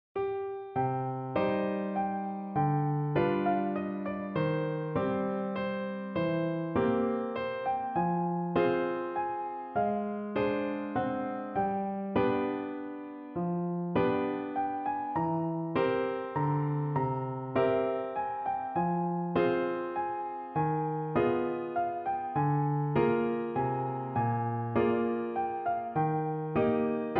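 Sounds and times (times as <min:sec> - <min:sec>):
piano: 0:00.2 - 0:27.1.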